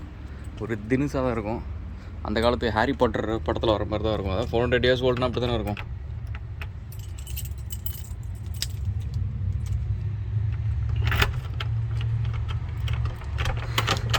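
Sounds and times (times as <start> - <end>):
low rumbling hum: 0.0 - 14.1
speech: 0.6 - 5.9
keys jangling in a door lock: 4.4 - 9.9, 10.9 - 14.1.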